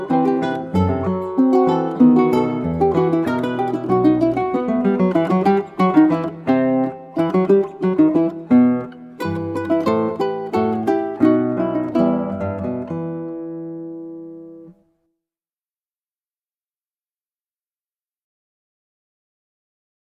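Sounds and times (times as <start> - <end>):
ukulele playing a polonaise: 0.0 - 14.9
guitar playing a polonaise: 0.0 - 15.0.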